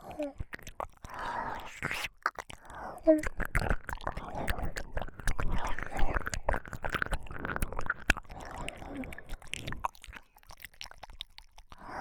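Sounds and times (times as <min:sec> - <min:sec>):
whispering: 0:00.0 - 0:06.5, 0:08.4 - 0:09.3
wet ear licking: 0:00.0 - 0:11.9.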